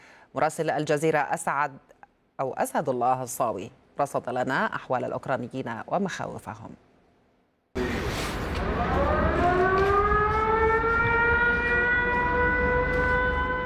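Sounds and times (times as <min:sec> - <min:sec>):
speech: 0:00.3 - 0:06.9
air raid warning siren wailing: 0:07.8 - 0:13.6.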